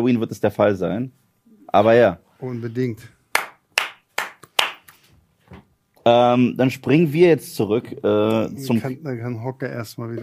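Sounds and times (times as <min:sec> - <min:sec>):
speech: 0:00.0 - 0:03.2, 0:06.0 - 0:10.2
applause: 0:03.3 - 0:04.9.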